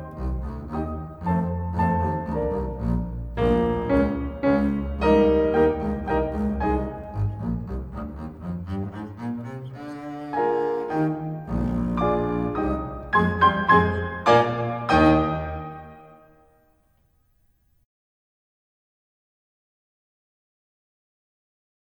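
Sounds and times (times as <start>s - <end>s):
bass: 0.0s - 9.4s, 11.1s - 15.8s.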